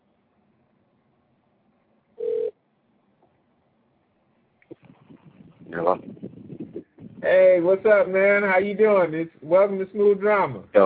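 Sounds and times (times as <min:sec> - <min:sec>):
telephone ringing: 0:02.2 - 0:02.6
speech: 0:05.8 - 0:06.1, 0:07.2 - 0:10.8.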